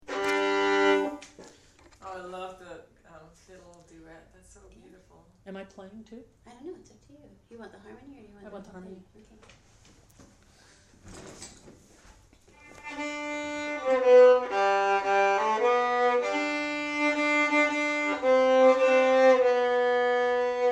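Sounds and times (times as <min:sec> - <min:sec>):
fiddle playing folk song harmony: 0:00.0 - 0:01.4, 0:12.5 - 0:20.7.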